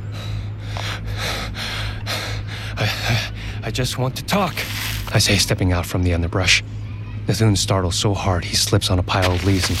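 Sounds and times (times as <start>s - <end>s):
man breathing hard after running: 0.1s - 3.6s
speech: 3.7s - 9.7s.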